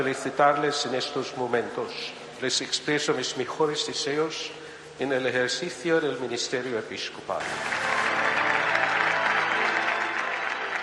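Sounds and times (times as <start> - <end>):
speech: 0.0 - 7.9
large church audience applause: 7.4 - 10.8.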